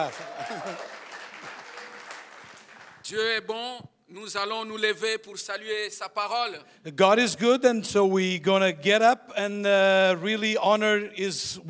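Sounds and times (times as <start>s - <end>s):
speech: 0.0s - 0.8s, 3.1s - 11.6s
audience applauding: 0.0s - 3.1s.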